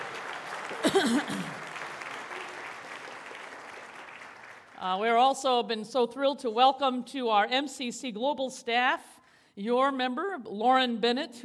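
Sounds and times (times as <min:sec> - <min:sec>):
audience clapping: 0:00.0 - 0:04.8
speech: 0:00.7 - 0:01.7, 0:04.8 - 0:11.4.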